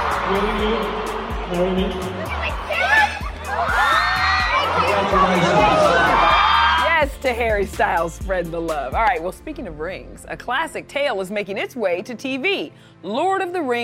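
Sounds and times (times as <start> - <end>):
concert crowd cheering: 0.0 - 7.1
speech: 0.3 - 2.4, 7.2 - 13.8.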